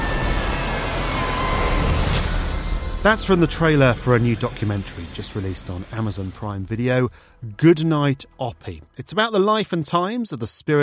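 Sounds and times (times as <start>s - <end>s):
rocket engine roar at launch liftoff: 0.0s - 7.4s
speech: 3.0s - 10.8s.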